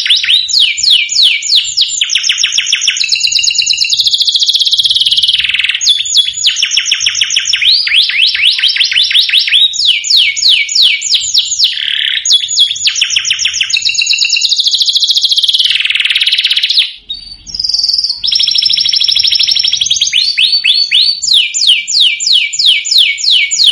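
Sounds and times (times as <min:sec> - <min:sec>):
domestic canary song: 0:00.0 - 0:23.7.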